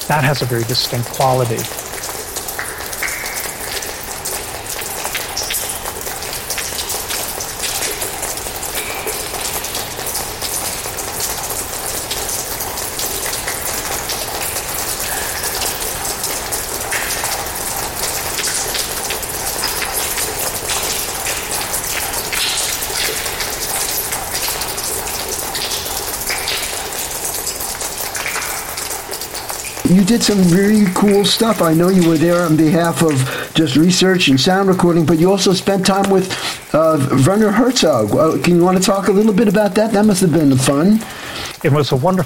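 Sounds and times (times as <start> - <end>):
water pattering reverberating off ice: 0.0 - 42.2
speech: 0.1 - 2.1, 30.1 - 42.2.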